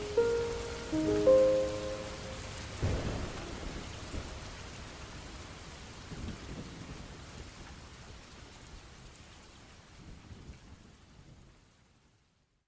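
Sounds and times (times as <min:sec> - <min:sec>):
sad piano song: 0:00.0 - 0:04.5.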